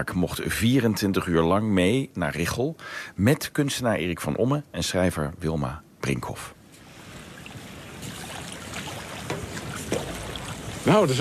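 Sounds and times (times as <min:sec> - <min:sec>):
speech: 0:00.0 - 0:06.6, 0:10.8 - 0:11.1
small boat arriving in shallow water: 0:06.8 - 0:11.1.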